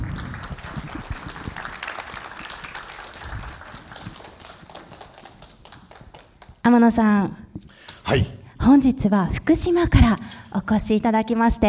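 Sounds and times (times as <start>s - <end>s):
audience applause welcoming a speaker: 0.0s - 6.5s
speech: 6.7s - 7.4s, 8.1s - 11.6s.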